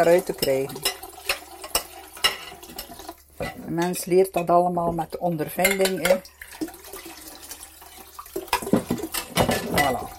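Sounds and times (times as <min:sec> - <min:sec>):
speech: 0:00.0 - 0:00.9, 0:03.4 - 0:06.3
running tap water splashing while dishes are rinsed: 0:00.0 - 0:03.4, 0:05.6 - 0:10.1
dishes clinking and knocking: 0:00.4 - 0:05.0, 0:05.6 - 0:06.3, 0:08.5 - 0:10.1.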